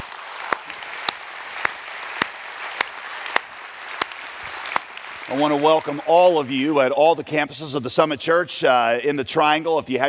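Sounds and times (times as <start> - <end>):
church congregation applauding to honor mothers: 0.0 - 7.3
speech: 5.3 - 10.0.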